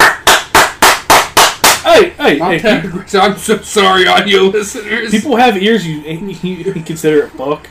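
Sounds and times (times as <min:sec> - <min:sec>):
hand clap: 0:00.0 - 0:01.9
speech: 0:02.0 - 0:07.6.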